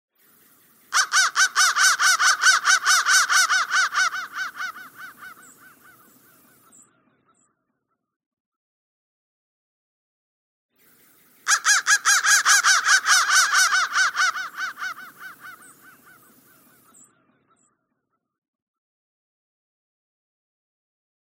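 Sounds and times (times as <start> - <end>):
crow cawing: 0.9 - 6.8, 11.5 - 17.0.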